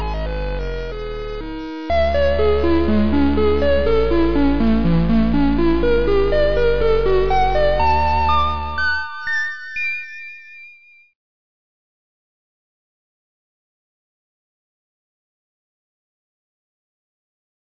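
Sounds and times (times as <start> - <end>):
song: 0.0 - 10.6.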